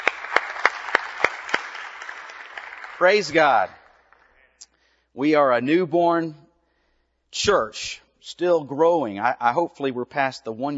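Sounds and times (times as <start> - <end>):
church congregation applauding: 0.0 - 4.6
speech: 3.0 - 3.8, 5.2 - 6.4, 7.3 - 10.7.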